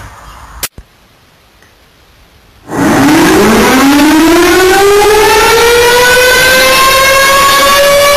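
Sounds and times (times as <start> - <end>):
siren: 2.7 - 8.1.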